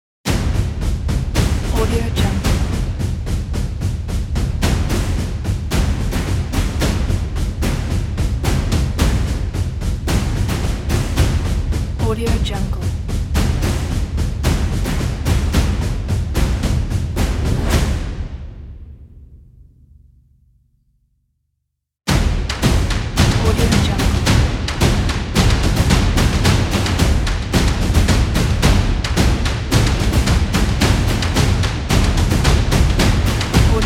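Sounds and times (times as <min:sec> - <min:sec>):
percussion: 0:00.3 - 0:18.7, 0:22.1 - 0:33.8.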